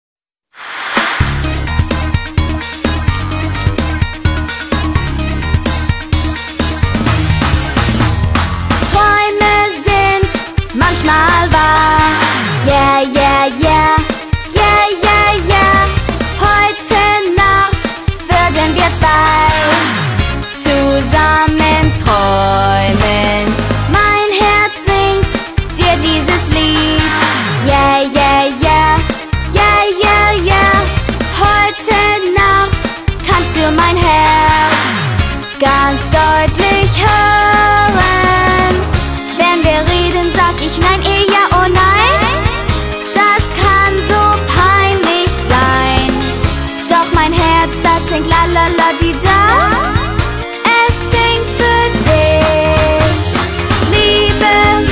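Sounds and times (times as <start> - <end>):
German song: 0.6 - 54.9.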